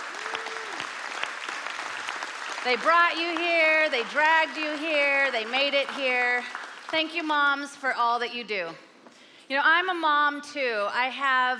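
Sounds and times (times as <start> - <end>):
audience applause: 0.0 - 7.0
speech: 2.6 - 8.9, 9.5 - 11.5.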